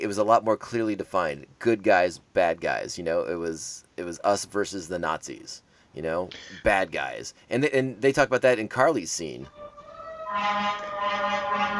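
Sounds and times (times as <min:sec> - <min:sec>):
speech: 0:00.0 - 0:09.6, 0:10.3 - 0:11.7
fire truck horn: 0:10.3 - 0:11.7.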